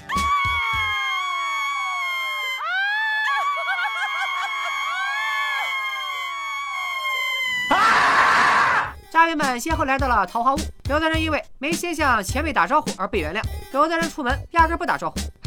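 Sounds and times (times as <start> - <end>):
woman screaming in delighted surprise: 0.1 - 8.9
speech: 9.3 - 15.4.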